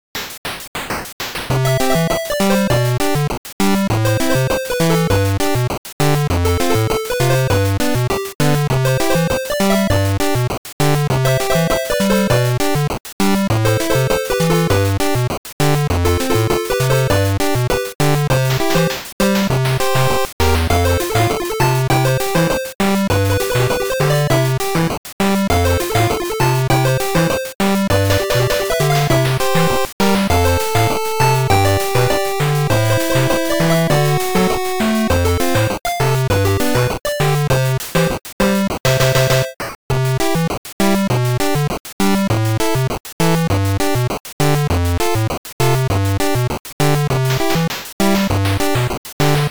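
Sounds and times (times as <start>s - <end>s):
8-bit tropical festival music: 1.5s - 49.4s.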